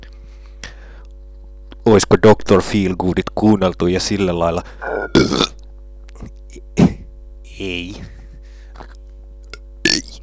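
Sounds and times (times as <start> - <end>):
steady electrical hum: 0.0 - 10.2
speech: 1.9 - 5.5, 7.6 - 8.2
loud low burps: 4.8 - 7.1, 9.5 - 10.2.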